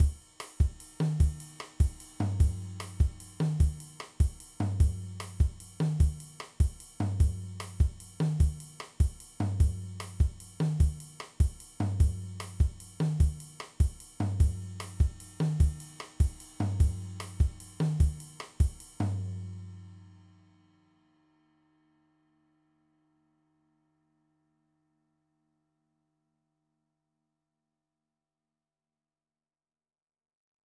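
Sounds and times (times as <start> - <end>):
Afro-Cuban music: 0.0 - 19.8.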